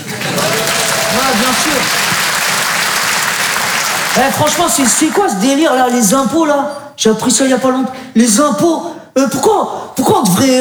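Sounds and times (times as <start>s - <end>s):
audience applause: 0.0s - 5.4s
speech: 4.2s - 10.6s.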